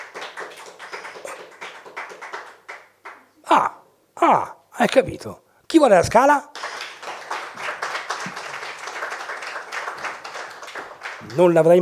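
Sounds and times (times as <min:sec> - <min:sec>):
audience applause: 0:00.0 - 0:03.2, 0:06.6 - 0:11.8
speech: 0:03.5 - 0:06.5, 0:11.3 - 0:11.8.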